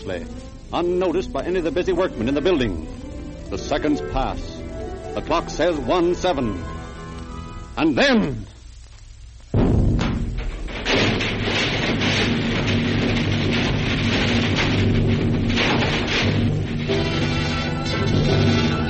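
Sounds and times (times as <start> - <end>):
speech: 0.0 - 4.6, 5.2 - 6.7, 7.8 - 8.5
Times building explosion: 9.5 - 18.8.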